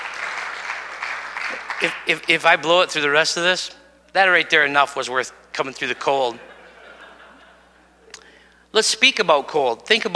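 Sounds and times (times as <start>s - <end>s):
audience clapping hands: 0.0s - 2.3s
speech: 1.8s - 6.5s, 8.7s - 10.1s
laughter: 5.8s - 8.1s.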